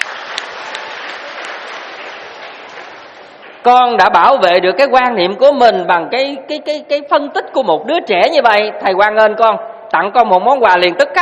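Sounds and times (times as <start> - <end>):
audience applause at a Buddhist dharma talk: 0.0 - 3.6
speech: 3.6 - 11.2.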